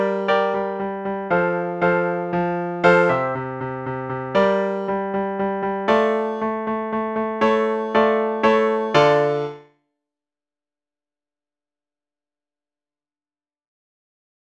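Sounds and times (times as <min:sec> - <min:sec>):
short piano piece without saxophone: 0:00.0 - 0:09.7.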